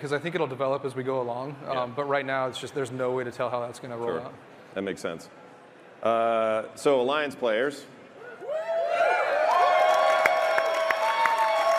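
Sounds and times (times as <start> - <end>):
speech: 0.0 - 5.4, 6.0 - 8.0
audience cheering and screaming: 8.2 - 11.7.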